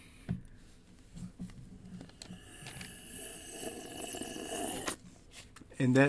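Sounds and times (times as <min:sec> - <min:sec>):
person slurping coffee: 0:02.2 - 0:05.0.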